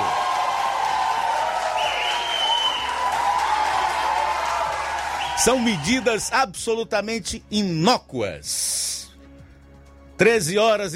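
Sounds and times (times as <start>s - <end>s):
audience applause: 0.0s - 6.2s
speech: 5.4s - 9.0s, 10.2s - 10.9s.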